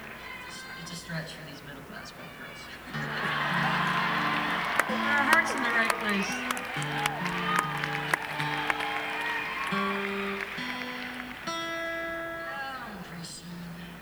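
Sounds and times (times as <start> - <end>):
laughter: 0.0 - 14.0
reggae interlude: 2.9 - 14.0.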